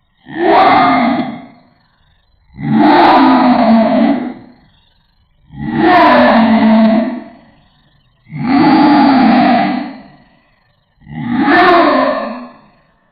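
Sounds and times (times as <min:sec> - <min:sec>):
aggressive roar: 0:00.3 - 0:01.6, 0:02.6 - 0:04.6, 0:05.5 - 0:07.5, 0:08.3 - 0:10.3, 0:11.0 - 0:12.7.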